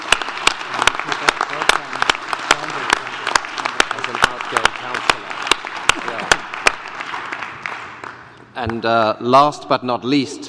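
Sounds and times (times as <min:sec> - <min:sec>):
audience applause: 0:00.0 - 0:08.3
speech: 0:08.6 - 0:10.4.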